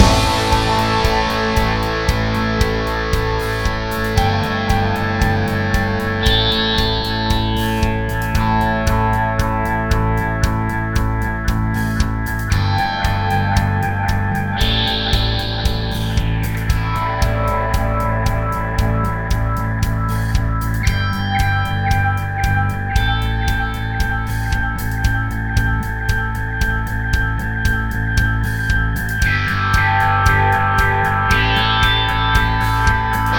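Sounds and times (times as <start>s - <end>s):
grunge rock music: 0.0s - 33.3s.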